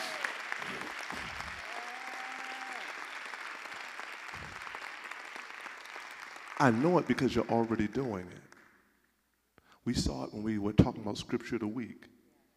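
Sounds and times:
audience hand clap of praise: 0.0 - 8.8
speech: 6.6 - 8.5, 9.8 - 12.1.

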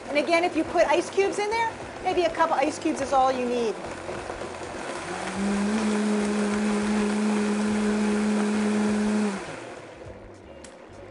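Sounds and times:
speech: 0.2 - 4.2
blender running: 4.7 - 10.0.

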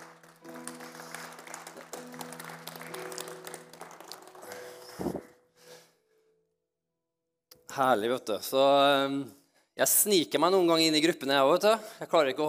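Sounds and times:
audience applause: 0.0 - 5.3
speech: 7.8 - 12.4.

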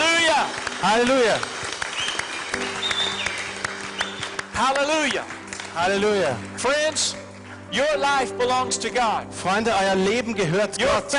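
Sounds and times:
audience applause: 0.0 - 7.7
speech: 0.8 - 1.6, 4.6 - 11.1.

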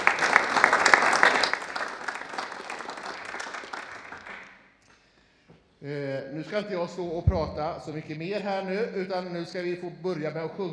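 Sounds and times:
audience applause: 0.0 - 4.6
speech: 6.4 - 10.7.

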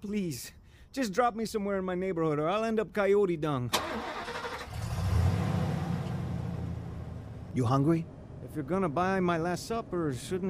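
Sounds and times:
speech: 0.0 - 4.2, 7.6 - 10.4
car engine as vehicle pulls away: 3.8 - 9.0.

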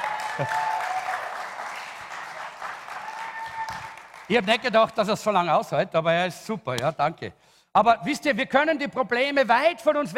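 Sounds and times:
whistles and cheers: 0.0 - 2.3, 2.9 - 4.0
audience applause: 0.0 - 4.7
speech: 0.4 - 0.7, 4.3 - 10.1.

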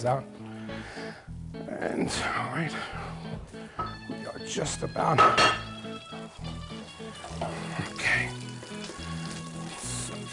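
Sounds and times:
speech: 0.0 - 3.2, 4.5 - 5.7
sauce heating and sizzling in a pan: 3.9 - 10.3.

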